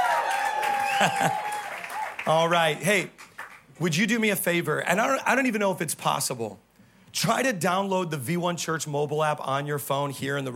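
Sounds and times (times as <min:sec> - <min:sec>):
crowd clapping and cheering: 0:00.0 - 0:03.8
speech: 0:01.0 - 0:01.5, 0:02.3 - 0:03.2, 0:03.8 - 0:10.5.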